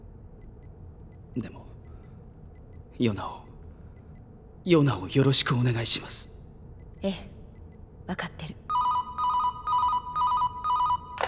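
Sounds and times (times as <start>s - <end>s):
speech: 1.4s - 1.6s, 3.0s - 3.5s, 4.7s - 6.4s, 7.0s - 7.3s, 8.1s - 8.5s
telephone ringing: 8.7s - 11.2s.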